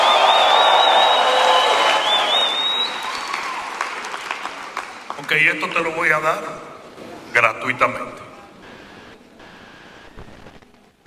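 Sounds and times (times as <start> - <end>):
shrill sliding whistle: 0.0 - 3.6
crowd cheering and applauding: 0.0 - 6.0
speech: 5.3 - 6.7, 7.3 - 8.2.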